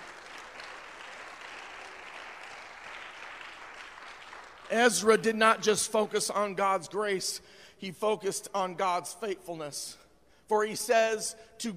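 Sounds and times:
audience hand clapping: 0.0s - 5.3s
speech: 4.7s - 11.7s.

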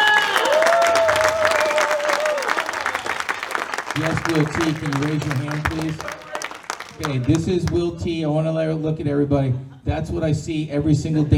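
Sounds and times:
high whistle or cheer: 0.0s - 3.4s
audience applauding: 0.0s - 7.8s
speech: 4.1s - 6.2s, 7.0s - 11.3s.

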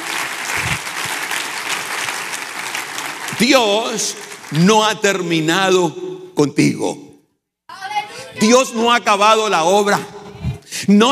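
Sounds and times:
large audience clapping: 0.0s - 5.8s
speech: 3.4s - 7.0s, 8.4s - 10.2s, 10.8s - 11.1s.

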